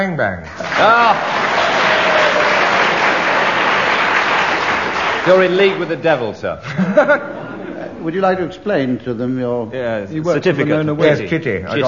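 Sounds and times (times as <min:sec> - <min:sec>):
speech: 0:00.0 - 0:01.6, 0:05.2 - 0:07.4, 0:08.0 - 0:11.8
audience applause: 0:00.5 - 0:06.0
laughter: 0:06.6 - 0:08.3.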